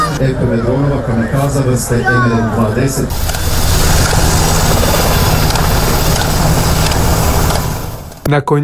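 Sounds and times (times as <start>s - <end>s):
speech: 0.2s - 3.6s, 8.3s - 8.6s
helicopter flying overhead: 3.1s - 8.2s.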